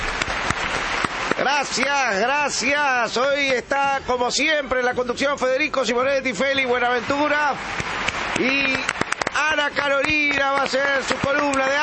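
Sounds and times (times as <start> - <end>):
applause sound effect: 0.0 - 2.6, 6.8 - 11.8
speech: 1.5 - 7.8, 8.4 - 11.8.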